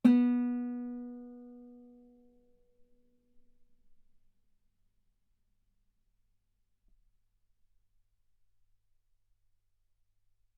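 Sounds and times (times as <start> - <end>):
guitar note B3: 0.0 - 1.9.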